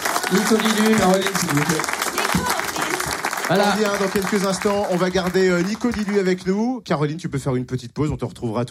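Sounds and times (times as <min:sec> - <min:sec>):
studio audience applause: 0:00.0 - 0:06.7
speech: 0:00.3 - 0:02.4, 0:03.5 - 0:08.6.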